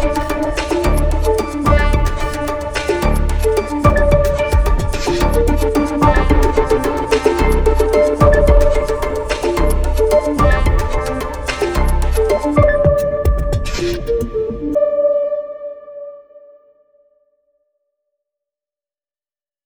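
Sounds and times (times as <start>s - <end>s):
rhythmic suspense music: 0.0s - 15.0s.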